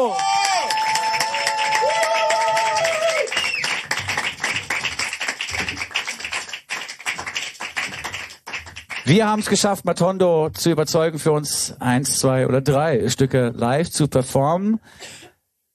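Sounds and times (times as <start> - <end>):
speech: 0.0 - 0.3, 9.1 - 15.1
crowd cheering: 0.0 - 6.2
audience applause: 0.0 - 9.5.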